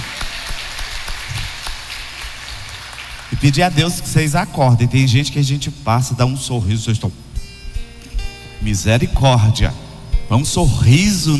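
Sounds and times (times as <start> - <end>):
audience applause: 0.0 - 3.7
speech: 3.4 - 7.3, 8.6 - 11.3.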